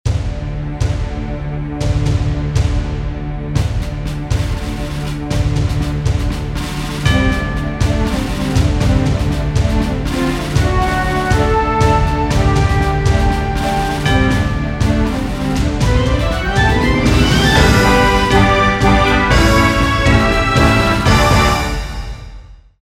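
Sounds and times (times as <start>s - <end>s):
patriotic military music: 0.1s - 22.4s.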